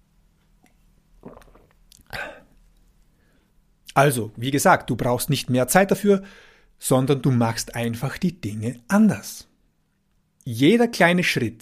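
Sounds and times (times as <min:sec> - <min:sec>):
small sip of water with a brief swallow: 0:00.6 - 0:02.9
speech: 0:04.0 - 0:09.5, 0:10.4 - 0:11.6.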